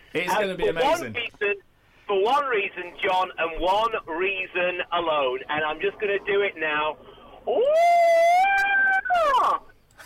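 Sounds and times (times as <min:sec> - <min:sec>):
speech: 0:00.1 - 0:08.2
person's long loud howling crow yell imitation: 0:07.5 - 0:09.6.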